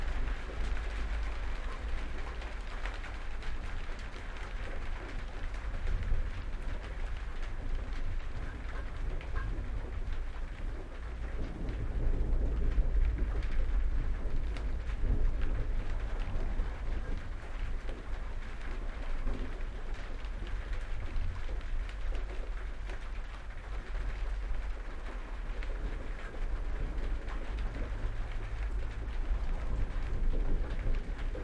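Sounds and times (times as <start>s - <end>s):
rain patter on a shed in Somercotes Derbyshire: 0.0s - 31.4s
deep low thunder rumble: 5.4s - 31.4s.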